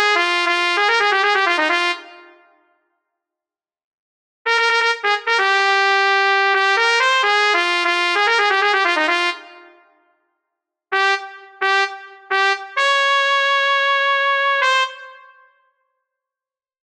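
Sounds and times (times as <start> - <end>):
trumpet in B flat: 0.0 - 2.7, 4.5 - 10.1, 10.9 - 15.8.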